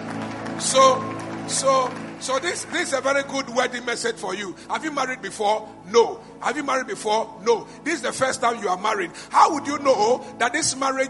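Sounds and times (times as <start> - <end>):
audience clapping: 0.0 - 4.0
speech: 0.6 - 11.0.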